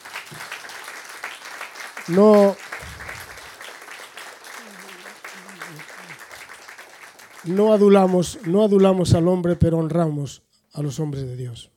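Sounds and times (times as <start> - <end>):
crowd applauding: 0.0 - 9.2
speech: 2.1 - 2.6, 7.4 - 11.7.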